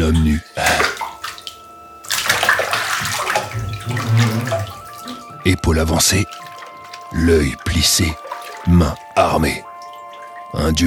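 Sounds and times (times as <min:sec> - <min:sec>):
water running from a bathtub tap: 0:00.0 - 0:10.8
speech: 0:05.5 - 0:06.4, 0:07.1 - 0:09.7, 0:10.5 - 0:10.8.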